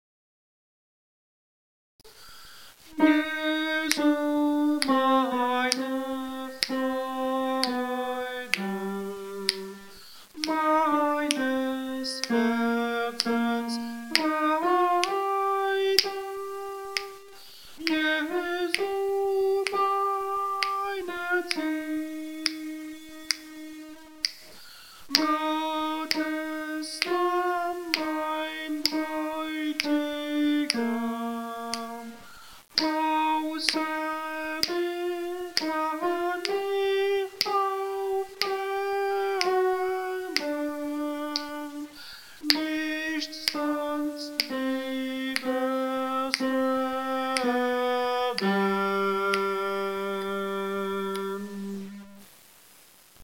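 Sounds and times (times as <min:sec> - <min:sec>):
alto singing: 0:02.9 - 0:52.3.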